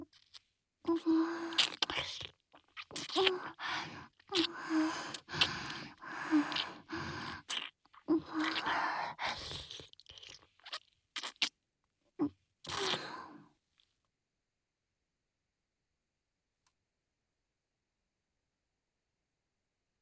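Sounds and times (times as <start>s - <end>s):
kissing: 0.2s - 2.1s, 2.8s - 3.6s, 4.3s - 8.7s, 10.7s - 11.5s, 12.7s - 13.1s.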